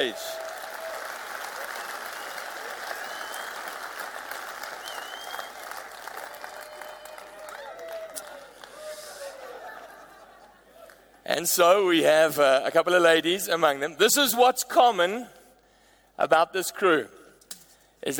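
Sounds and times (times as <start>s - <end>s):
speech: 0.0s - 0.4s, 11.4s - 15.4s, 16.2s - 17.2s
audience applause: 0.0s - 9.9s
laughter: 8.8s - 11.2s.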